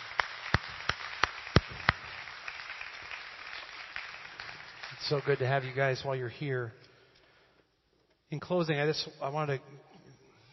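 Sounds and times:
crowd applause: 0.0s - 6.0s
speech: 5.0s - 6.9s, 8.3s - 9.9s.

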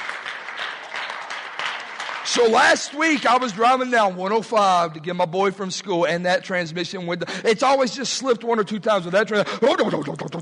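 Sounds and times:
crowd clapping: 0.0s - 4.8s
speech: 2.3s - 10.4s.

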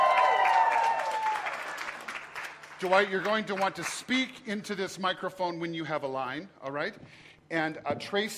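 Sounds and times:
audience applause: 0.0s - 3.9s
speech: 2.8s - 8.3s.

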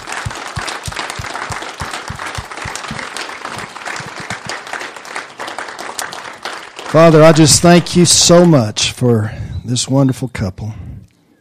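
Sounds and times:
audience clapping to honor a couple: 0.0s - 8.6s
speech: 6.9s - 10.8s.

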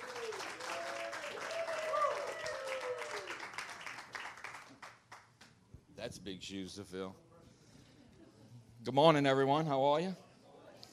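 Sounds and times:
audience applause: 0.0s - 5.0s
speech: 6.0s - 7.3s, 8.8s - 10.2s.

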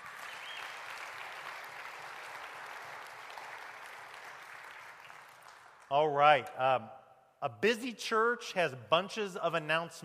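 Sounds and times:
audience applause: 0.0s - 5.9s
speech: 5.9s - 10.0s.

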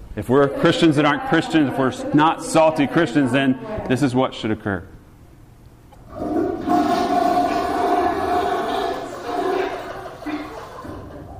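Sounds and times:
speech: 0.2s - 4.9s
toilet flushing: 6.1s - 11.3s.

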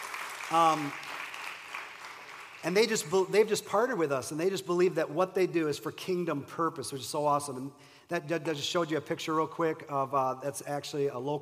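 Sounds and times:
audience clapping: 0.0s - 3.6s
speech: 0.5s - 1.1s, 2.6s - 11.4s.

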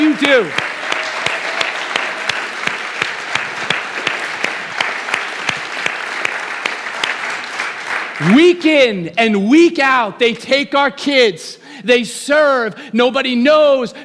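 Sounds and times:
audience clapping: 0.0s - 8.8s
speech: 0.2s - 0.7s, 8.2s - 14.0s.

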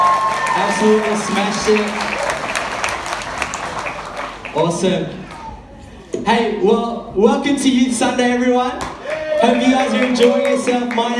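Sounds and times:
applause for the worship team at a Youth Sunday church service: 0.0s - 5.5s, 8.8s - 11.1s
speech: 0.8s - 2.0s, 4.6s - 5.3s, 6.3s - 11.1s.

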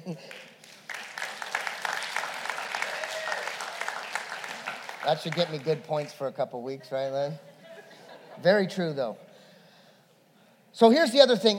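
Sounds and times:
audience clapping: 0.0s - 6.3s
speech: 0.1s - 0.5s, 5.0s - 7.5s, 8.4s - 9.2s, 10.8s - 11.5s
laughter: 6.6s - 8.7s.

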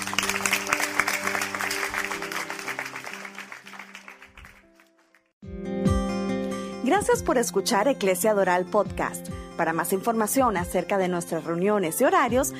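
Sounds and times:
crowd clapping: 0.0s - 5.4s
soft sustained music: 0.0s - 12.5s
speech: 6.9s - 12.5s.

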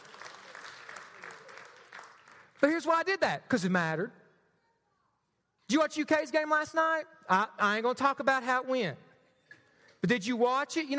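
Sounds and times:
audience applause: 0.0s - 2.6s
speech: 2.6s - 4.2s, 5.7s - 9.0s, 10.0s - 10.9s.

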